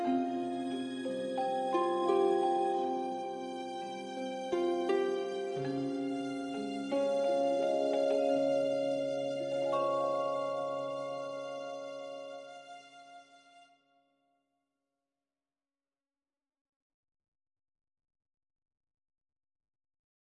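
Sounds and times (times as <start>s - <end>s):
game map music: 0.0s - 12.8s.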